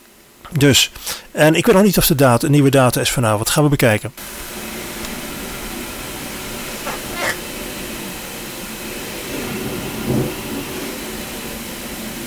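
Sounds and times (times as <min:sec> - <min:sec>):
speech: 0:00.5 - 0:04.6
high-pressure spraying of a wall: 0:04.2 - 0:12.2.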